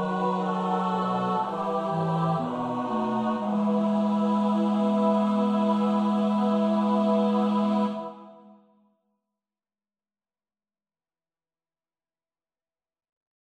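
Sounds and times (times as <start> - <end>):
tenor singing choir part: 0.0 - 8.6.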